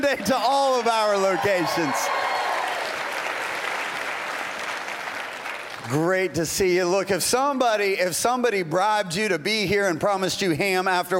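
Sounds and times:
speech: 0.0 - 2.4, 5.9 - 11.1
large crowd clapping: 0.2 - 6.3.

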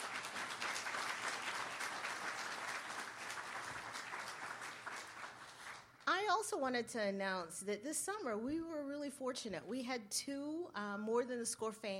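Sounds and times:
audience applause welcoming a speaker at a talk: 0.0 - 6.0
speech: 6.3 - 11.9.

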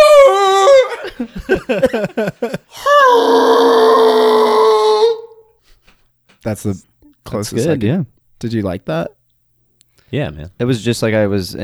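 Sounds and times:
laughter: 0.6 - 3.0
speech: 1.7 - 3.9, 6.5 - 9.2, 10.1 - 11.6
person imitating T-Rex roar: 2.7 - 5.4.

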